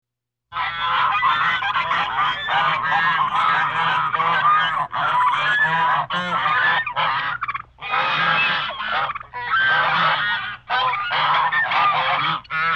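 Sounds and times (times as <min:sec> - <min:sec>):
flock of geese and ducks honking and cackling: 0:00.5 - 0:12.7.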